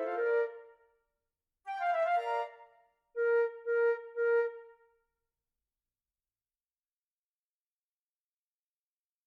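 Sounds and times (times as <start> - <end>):
woodwind: 0.0 - 1.0, 1.7 - 5.1.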